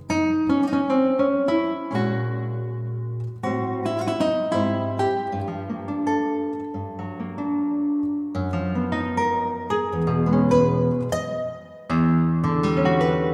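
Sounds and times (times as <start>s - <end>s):
guitar piece: 0.0s - 13.3s.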